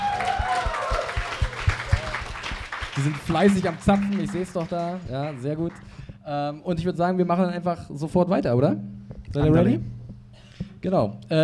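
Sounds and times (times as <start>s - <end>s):
audience applause: 0.0s - 6.0s
speech: 3.0s - 10.0s, 10.8s - 11.4s.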